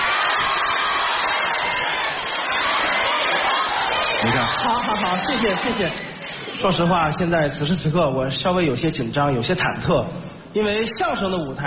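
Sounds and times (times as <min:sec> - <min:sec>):
audience applause: 0:00.0 - 0:06.6
speech: 0:04.2 - 0:11.6.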